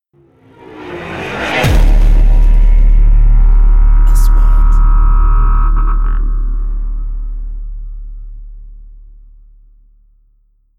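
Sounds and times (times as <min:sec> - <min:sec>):
3D trailer sound effects: 0:00.2 - 0:08.4.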